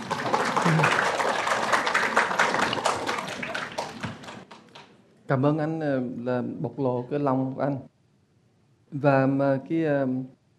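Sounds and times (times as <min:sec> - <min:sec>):
audience applause at a Buddhist teaching session: 0:00.0 - 0:04.9
speech: 0:05.3 - 0:07.9, 0:08.9 - 0:10.4.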